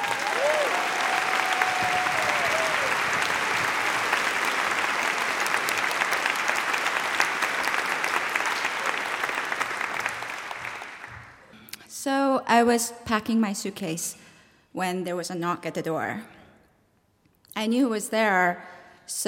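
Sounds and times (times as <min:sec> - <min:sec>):
audience applause for a storyteller: 0:00.0 - 0:11.4
speech: 0:12.6 - 0:14.2, 0:14.8 - 0:16.4, 0:17.6 - 0:19.2.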